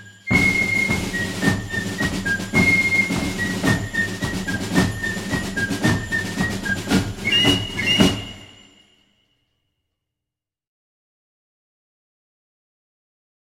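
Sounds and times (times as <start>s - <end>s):
march music: 0.3s - 9.0s.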